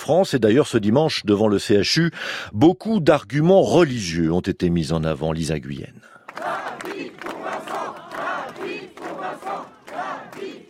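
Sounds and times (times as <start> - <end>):
speech: 0.0 - 7.0
protesters chanting slogans: 6.3 - 10.6.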